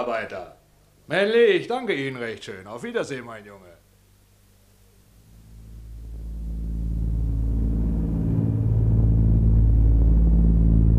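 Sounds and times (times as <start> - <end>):
speech: 0.0 - 3.8
airplane engines droning in flight: 5.2 - 10.9.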